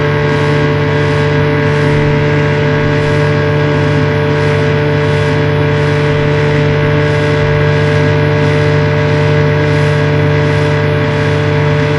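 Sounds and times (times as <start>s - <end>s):
motorboat engine starting and idling: 0.0s - 11.9s.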